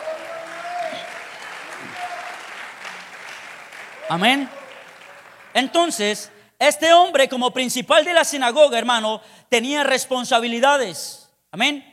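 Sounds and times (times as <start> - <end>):
audience applauding loudly: 0.0 - 6.3
speech: 4.1 - 4.6, 5.6 - 11.9.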